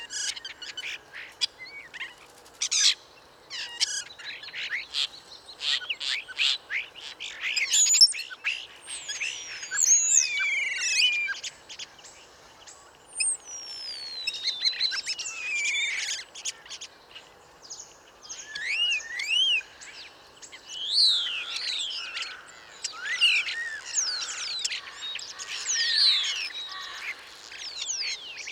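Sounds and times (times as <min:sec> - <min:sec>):
songbirds chirping in the woods at Bois de Vincennes: 0:00.0 - 0:28.4.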